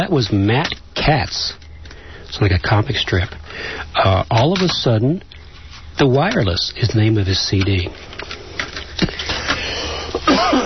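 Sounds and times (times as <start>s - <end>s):
speech: 0.0s - 1.6s, 2.3s - 5.4s, 6.0s - 8.1s
cough: 10.1s - 10.6s.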